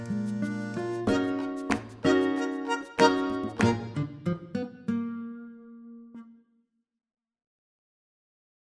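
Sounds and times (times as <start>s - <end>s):
guitar backing track: 0.0s - 6.5s.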